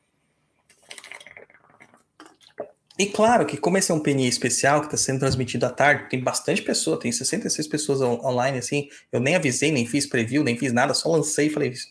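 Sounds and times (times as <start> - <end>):
person drinking water to wet the throat: 0.6 - 3.4
swallowing: 0.7 - 3.0
speech: 3.0 - 11.8.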